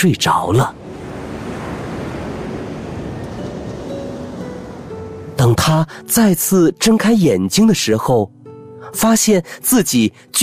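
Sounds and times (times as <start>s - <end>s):
speech: 0.0s - 0.8s, 5.4s - 10.4s
ocean waves: 0.0s - 7.2s.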